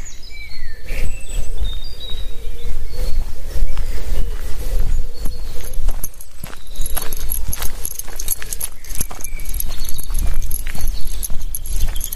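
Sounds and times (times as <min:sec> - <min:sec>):
birds chirping in the woods: 0:00.0 - 0:12.1
crunching footsteps in the woods: 0:03.2 - 0:12.1.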